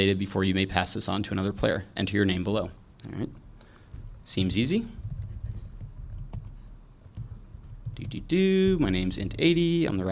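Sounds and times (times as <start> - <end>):
speech: 0.0 - 3.4, 4.2 - 5.0, 8.0 - 10.1
typing on a computer keyboard: 3.6 - 10.1.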